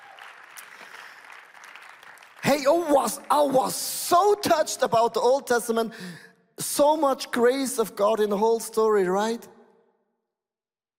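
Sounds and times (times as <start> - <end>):
crowd clapping: 0.0 - 3.8
speech: 2.5 - 9.5.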